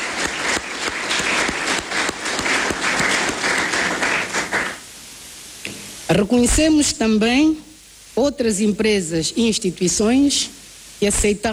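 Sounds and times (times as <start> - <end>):
audience applause: 0.0 - 4.9
speech: 6.1 - 11.5.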